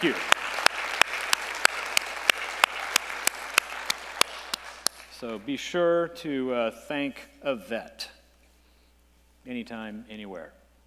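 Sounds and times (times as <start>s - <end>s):
speech: 0.0s - 0.4s, 5.2s - 8.2s, 9.5s - 10.6s
audience applause: 0.0s - 5.3s.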